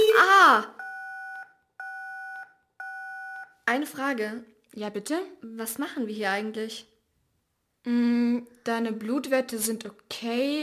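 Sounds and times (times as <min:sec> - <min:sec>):
blood scanner beeping in two-tone electronic beeps: 0:00.8 - 0:03.6
speech: 0:03.7 - 0:06.9, 0:07.8 - 0:10.6.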